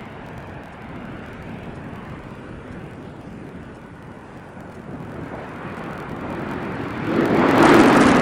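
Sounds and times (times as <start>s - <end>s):
space shuttle on final approach with landing gear down and locked: 0.0s - 8.1s.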